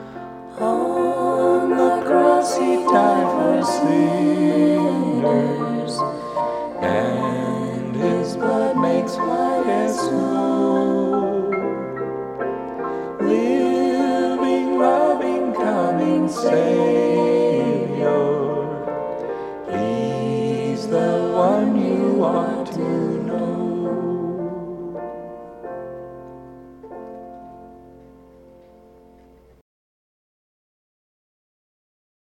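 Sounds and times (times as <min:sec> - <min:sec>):
hymn: 0:00.0 - 0:12.1, 0:12.8 - 0:25.4.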